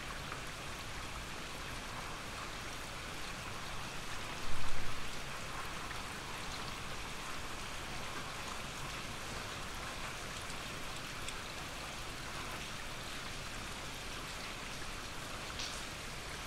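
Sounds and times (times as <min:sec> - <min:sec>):
gentle rain: 0:00.0 - 0:16.4.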